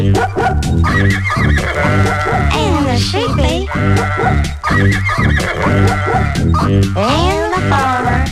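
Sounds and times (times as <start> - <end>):
speech: 0.0 - 2.0
horse whinnying: 0.8 - 2.8, 3.6 - 8.2.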